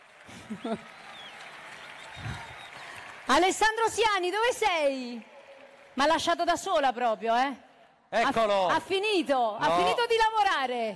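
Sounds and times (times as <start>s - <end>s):
crowd applause: 0.0s - 6.7s
speech: 0.5s - 1.0s, 3.3s - 5.3s, 6.0s - 10.9s.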